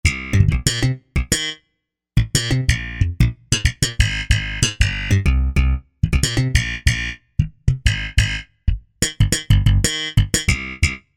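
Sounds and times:
slap bass: 0.0 - 1.4, 2.2 - 11.0.

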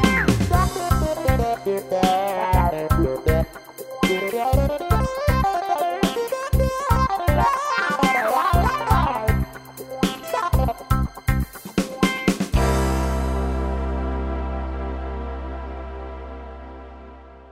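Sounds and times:
seventies TV theme music on an arranger keyboard: 0.0 - 17.5.

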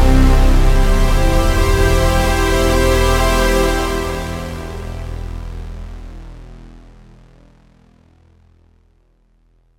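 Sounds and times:
synthesizer pad: 0.0 - 7.5.

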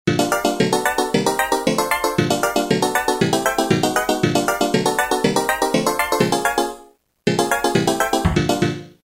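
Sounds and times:
arpeggio: 0.1 - 9.0.

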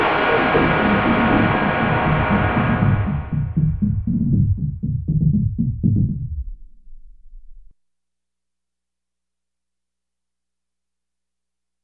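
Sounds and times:
synthwave bass: 0.0 - 7.6.

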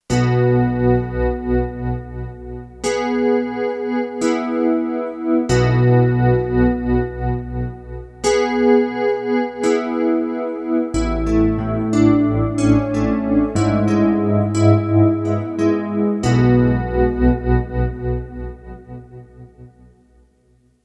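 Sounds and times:
Kurzweil K2500X synthesizer factory program: 0.1 - 20.2.

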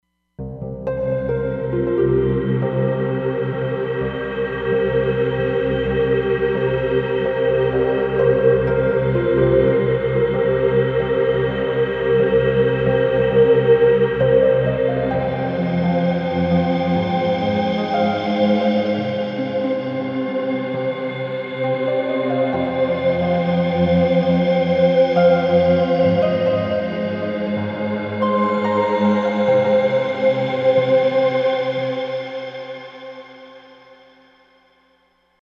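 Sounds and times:
Roland Fantom XR synthesizer: 0.4 - 34.3.

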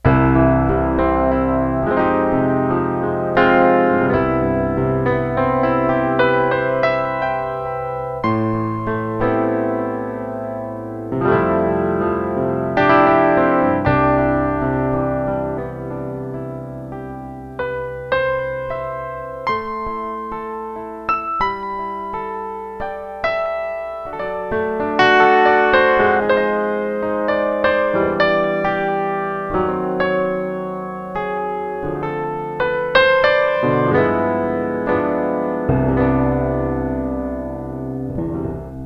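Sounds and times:
piano: 0.0 - 38.8.

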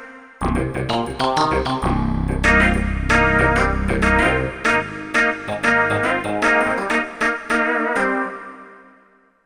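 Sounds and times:
funky Korg MSC-07S synth: 0.4 - 8.5.

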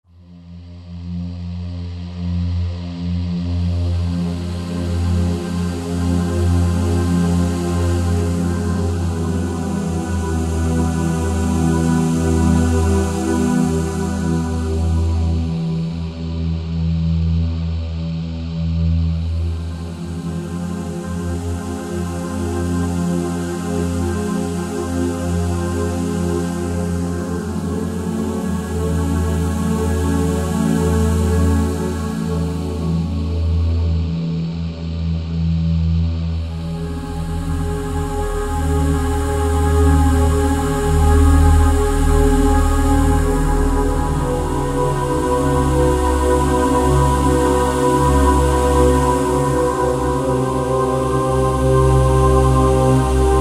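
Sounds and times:
Roland JV-2080 synthesizer patch: 0.1 - 53.4.

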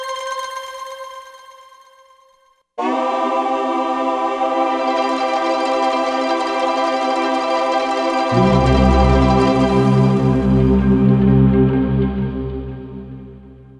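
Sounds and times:
Korg M1 synthesizer: 2.8 - 13.7.

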